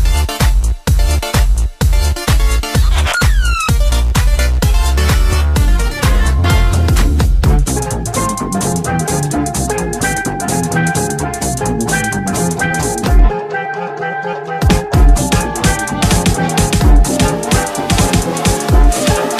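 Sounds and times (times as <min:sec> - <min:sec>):
remixed gaming background music: 0:00.0 - 0:19.3.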